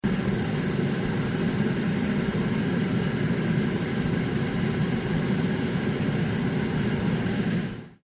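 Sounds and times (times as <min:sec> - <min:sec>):
spaceship interior ambience: 0:00.0 - 0:08.0.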